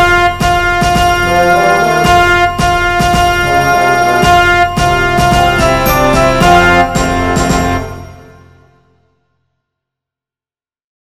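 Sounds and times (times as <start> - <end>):
orchestra playing a joyful processional: 0.0 - 8.6.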